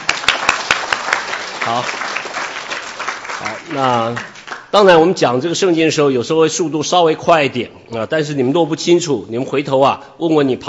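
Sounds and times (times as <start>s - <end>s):
audience applauding: 0.0s - 4.7s
speech: 1.7s - 2.0s, 3.4s - 10.6s.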